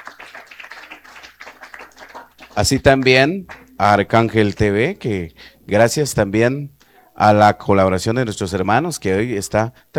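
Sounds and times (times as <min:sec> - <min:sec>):
applause for a church choir at a Catholic church in Colonia Legual: 0:00.0 - 0:03.6
speech: 0:02.6 - 0:09.9.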